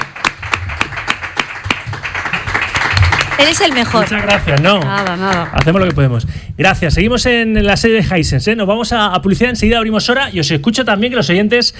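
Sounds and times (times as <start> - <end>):
studio applause: 0.0 - 6.2
speech: 3.4 - 11.7.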